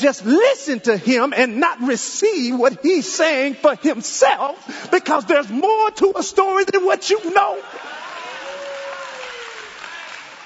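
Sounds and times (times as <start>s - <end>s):
speech: 0.0s - 8.0s
audience clapping: 7.8s - 10.4s.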